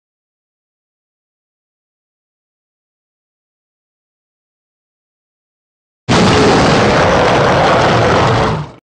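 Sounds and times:
roar: 6.1s - 8.8s.

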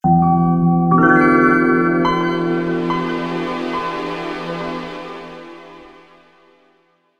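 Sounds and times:
computer startup sound: 1.0s - 6.5s.

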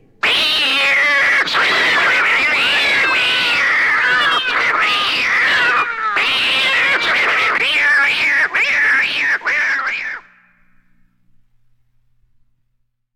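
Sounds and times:
cat yowling: 0.2s - 10.3s.

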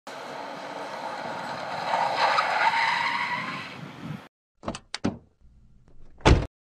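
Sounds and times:
car speeding and stopping: 0.1s - 4.3s
car door: 4.6s - 5.3s, 6.0s - 6.5s.

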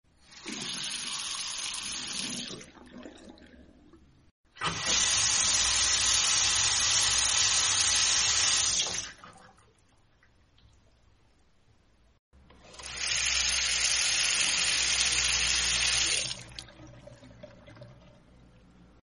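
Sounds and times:
water tap running: 0.3s - 2.5s, 4.6s - 9.2s, 12.6s - 16.7s.

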